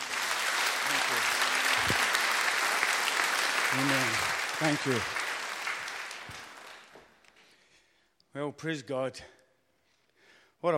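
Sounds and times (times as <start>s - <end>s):
audience applause: 0.0s - 7.2s
speech: 3.7s - 5.2s, 8.4s - 9.4s, 10.6s - 10.7s.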